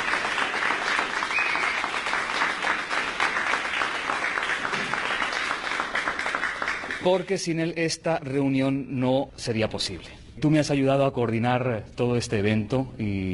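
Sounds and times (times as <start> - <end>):
audience applause: 0.0 - 7.2
speech: 7.0 - 13.3.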